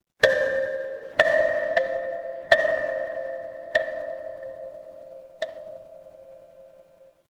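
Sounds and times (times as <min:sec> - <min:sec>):
dark horror ambience: 0:00.2 - 0:07.0.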